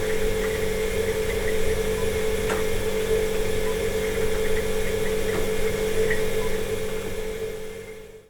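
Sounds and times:
fridge hum: 0.0 - 8.1.

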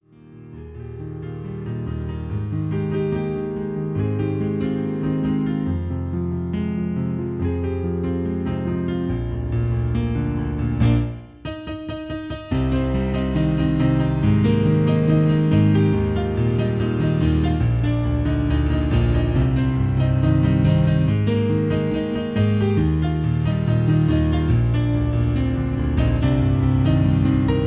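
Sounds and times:
piano version: 0.0 - 27.6.

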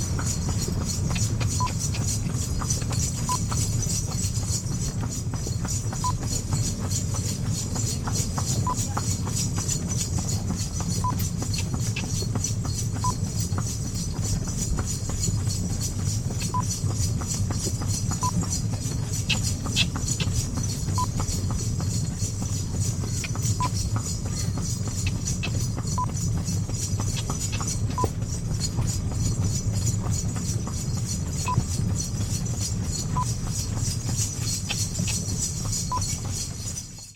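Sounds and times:
riding on horse-drawn cart: 0.0 - 37.1.

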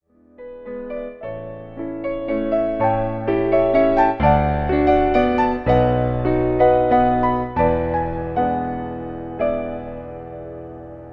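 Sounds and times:
waltz music: 1.8 - 10.2.

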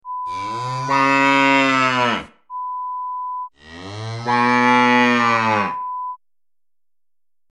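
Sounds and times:
cow: 0.2 - 2.4, 3.6 - 5.9.

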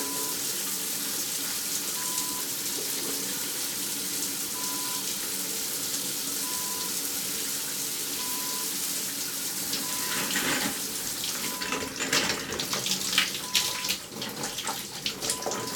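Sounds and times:
shower running: 0.0 - 15.7.

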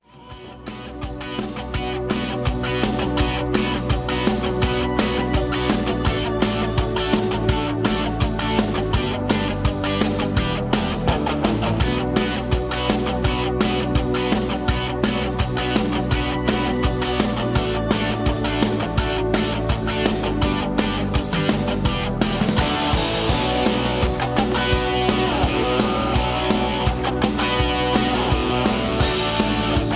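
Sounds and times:
music in B minor: 0.3 - 29.9.

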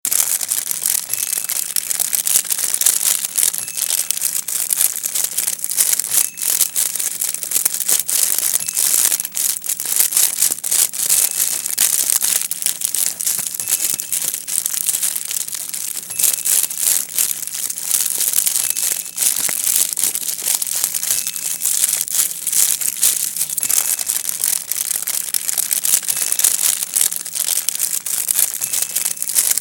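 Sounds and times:
fire: 0.1 - 29.5.

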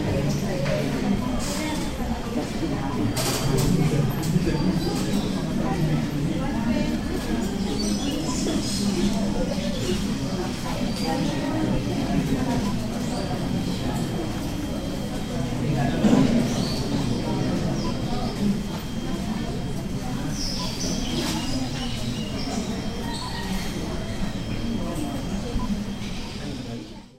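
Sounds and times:
airport departure lounge ambience in Busuanga: 0.0 - 27.1.

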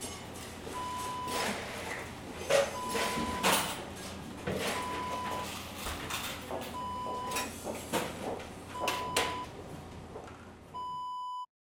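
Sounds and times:
fast food restaurant ambience: 0.0 - 10.8.

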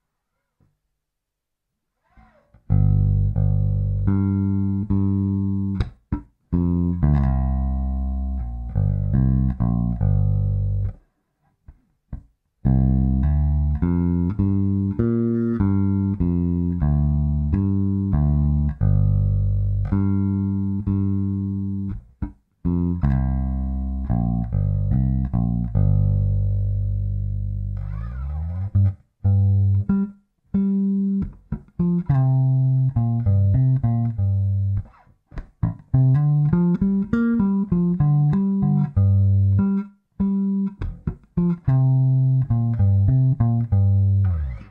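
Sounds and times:
G minor pentatonic melody line with fill: 2.2 - 11.0, 12.6 - 44.6.

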